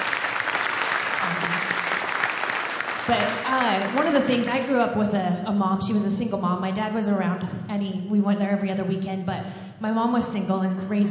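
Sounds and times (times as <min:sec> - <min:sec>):
crowd applauding: 0:00.0 - 0:04.7
speech: 0:03.1 - 0:11.1.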